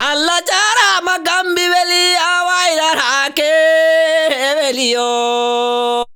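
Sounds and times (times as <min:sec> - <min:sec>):
vocal lines: 0:00.0 - 0:06.1.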